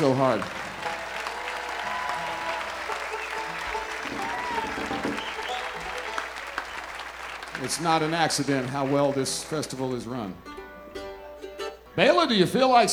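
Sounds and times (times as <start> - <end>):
speech: 0.0 - 0.6, 7.6 - 10.5, 12.0 - 12.9
scattered voices and cheers: 0.0 - 10.0
crowd applauding: 0.0 - 10.4.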